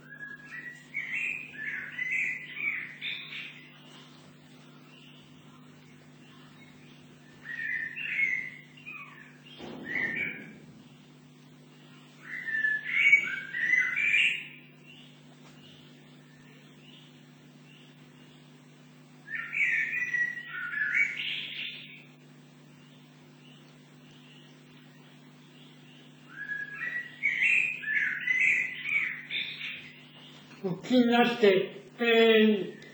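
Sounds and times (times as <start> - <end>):
Eurasian blackbird singing in bushes: 0.0 - 18.6, 19.2 - 32.9
speech: 30.9 - 32.8.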